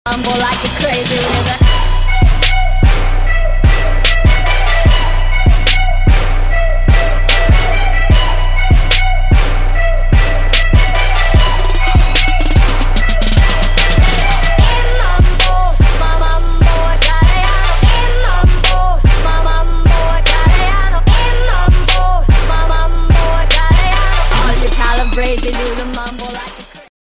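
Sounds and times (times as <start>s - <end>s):
mambo music: 0.1s - 26.9s.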